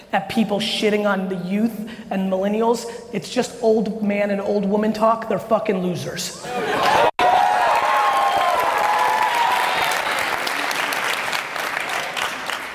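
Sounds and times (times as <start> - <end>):
speech: 0.1 - 7.1
audience applause and cheering: 6.6 - 12.7.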